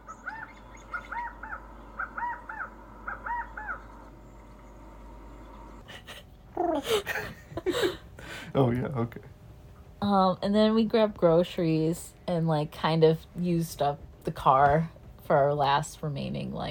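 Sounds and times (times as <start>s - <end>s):
California quail call: 0.1s - 4.0s
laughter: 5.9s - 8.1s
speech: 8.6s - 9.4s, 10.1s - 16.7s.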